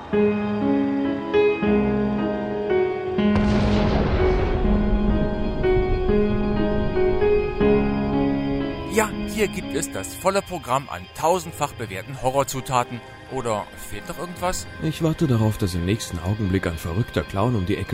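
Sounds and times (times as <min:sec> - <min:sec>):
piano melody: 0:00.0 - 0:17.9
speech: 0:00.1 - 0:00.5, 0:09.0 - 0:17.9
rumbling thunder: 0:03.3 - 0:09.7.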